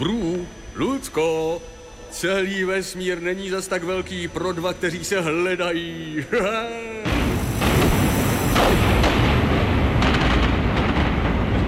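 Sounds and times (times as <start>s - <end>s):
speech: 0.8s - 7.1s
spaceship exploding and breaking apart: 7.0s - 11.6s
sharp crackling bursts: 7.1s - 11.6s.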